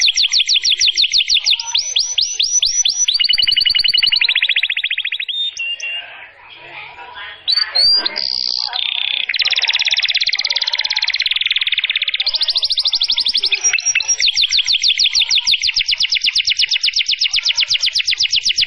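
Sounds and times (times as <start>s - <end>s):
canary singing: 0.0s - 18.6s.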